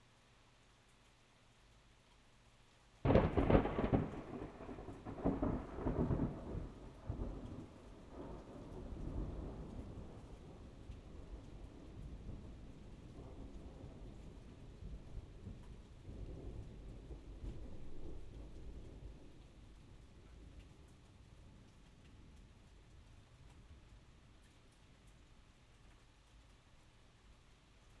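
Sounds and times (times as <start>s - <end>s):
thunder: 3.0s - 19.3s.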